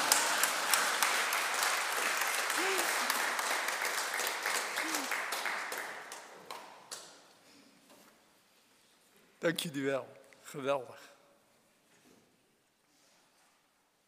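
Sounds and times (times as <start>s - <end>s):
audience applause: 0.0s - 6.6s
speech: 9.4s - 11.1s.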